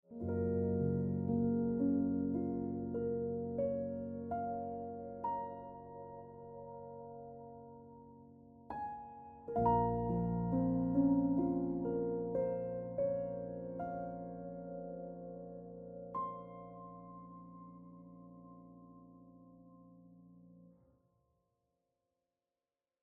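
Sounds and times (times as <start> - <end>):
piano ringtone music: 0.1 - 8.1, 8.7 - 20.1.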